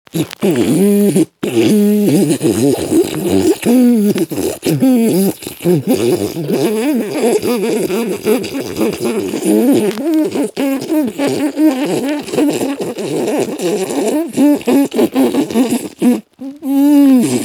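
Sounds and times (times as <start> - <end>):
beatboxing on the inhale: 0.1 - 17.4.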